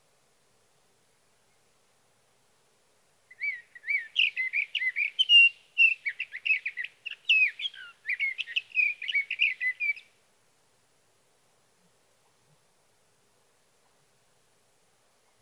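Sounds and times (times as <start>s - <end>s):
sage thrasher singing whistled phrases: 3.3s - 10.0s.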